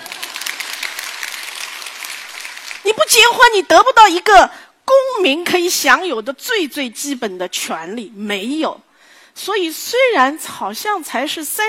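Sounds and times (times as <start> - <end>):
audience applause: 0.0 - 2.8
speech: 3.0 - 4.6, 5.2 - 11.6.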